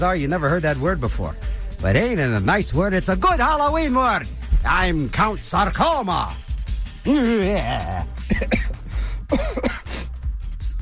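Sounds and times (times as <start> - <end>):
speech: 0.0 - 6.4, 7.0 - 8.6, 9.3 - 9.6
throat clearing of phlegm: 7.1 - 10.1.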